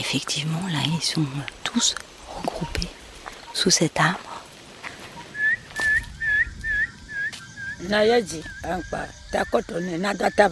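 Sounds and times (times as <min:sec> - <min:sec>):
speech: 0:00.1 - 0:03.0, 0:03.6 - 0:04.3, 0:07.8 - 0:10.5
small animals whistling a warning call: 0:05.2 - 0:10.5.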